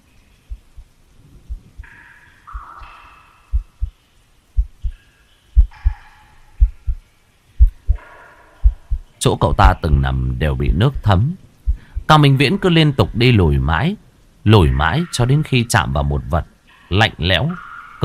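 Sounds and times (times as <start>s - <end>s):
heartbeat sound effect: 0.5s - 1.9s, 2.5s - 2.8s, 3.5s - 4.0s, 4.6s - 5.0s, 5.6s - 6.0s, 6.6s - 10.1s, 11.6s - 12.1s
speech: 9.2s - 11.4s, 12.1s - 18.0s.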